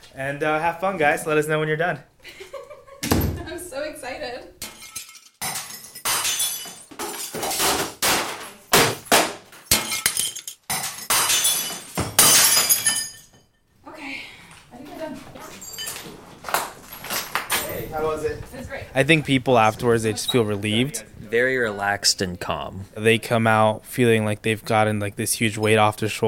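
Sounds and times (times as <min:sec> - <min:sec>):
speech: 0:00.2 - 0:02.4, 0:19.0 - 0:26.2
breaking and clinking debris: 0:04.6 - 0:13.6, 0:15.5 - 0:17.9
glass and electronics being smashed: 0:04.6 - 0:13.6.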